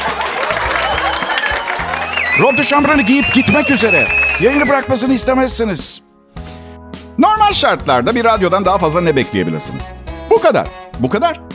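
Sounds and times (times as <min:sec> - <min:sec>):
audience applause: 0:00.0 - 0:04.9
speech: 0:02.4 - 0:06.0, 0:07.5 - 0:11.5.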